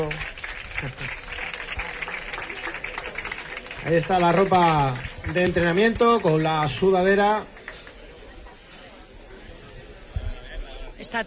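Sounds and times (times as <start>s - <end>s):
speech: 0.0s - 1.2s, 3.8s - 7.5s
audience applause: 0.0s - 8.6s.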